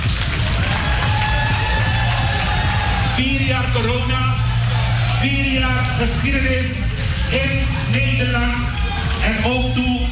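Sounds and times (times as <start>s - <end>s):
audience applause: 0.0s - 9.7s
speech: 3.2s - 4.4s, 5.2s - 10.1s.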